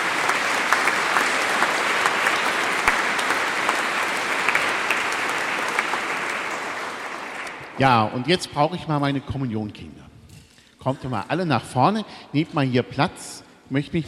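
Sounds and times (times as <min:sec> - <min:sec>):
audience clapping: 0:00.0 - 0:08.1
speech: 0:07.8 - 0:10.0, 0:10.8 - 0:14.0.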